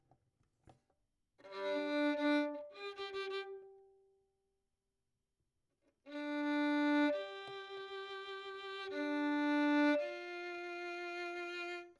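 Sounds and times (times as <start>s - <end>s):
violin: 1.4s - 4.0s, 6.1s - 11.9s.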